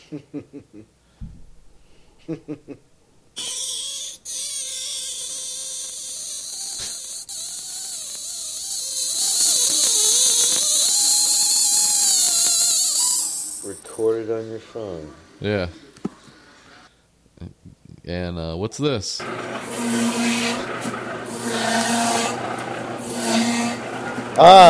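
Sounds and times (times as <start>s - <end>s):
speech: 0.1s - 1.4s, 2.3s - 2.9s, 14.0s - 15.8s, 18.1s - 19.7s, 24.4s - 24.6s
sink draining through rubber stopper, whistling: 3.4s - 13.7s, 19.6s - 24.6s
gurgling: 4.2s - 13.6s.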